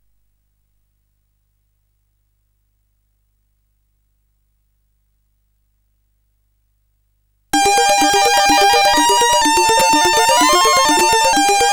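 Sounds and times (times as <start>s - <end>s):
slow synth arpeggios: 7.5s - 11.7s.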